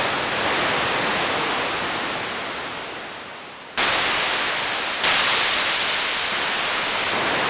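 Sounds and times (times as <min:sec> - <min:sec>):
wind: 0:00.0 - 0:07.4.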